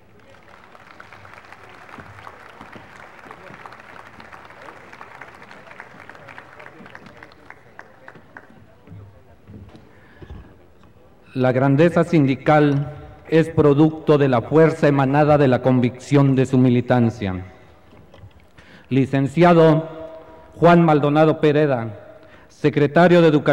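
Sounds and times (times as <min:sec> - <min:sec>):
audience applause: 0:00.0 - 0:08.9
murmur of voices: 0:00.0 - 0:11.3
speech: 0:11.4 - 0:17.5, 0:18.9 - 0:19.9, 0:20.6 - 0:23.5.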